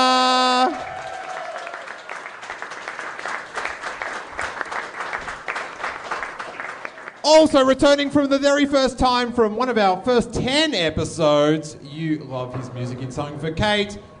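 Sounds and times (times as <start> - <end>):
audience round of applause: 0.5 - 7.2
speech: 7.3 - 14.1.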